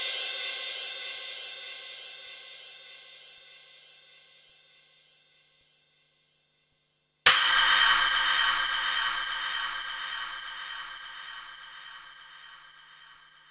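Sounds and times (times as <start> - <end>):
Korg 05R-W synthesizer cymbals: 7.3 - 13.2.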